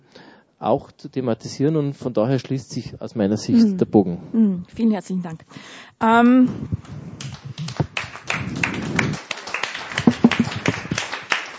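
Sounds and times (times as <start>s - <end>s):
speech: 0.6s - 7.0s
audience applause: 7.2s - 11.5s.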